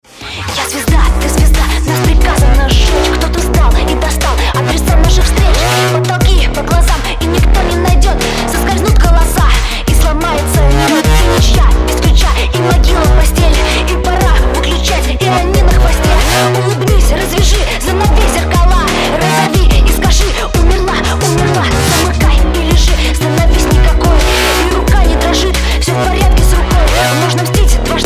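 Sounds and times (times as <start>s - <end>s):
dubstep mix: 0.0s - 28.0s.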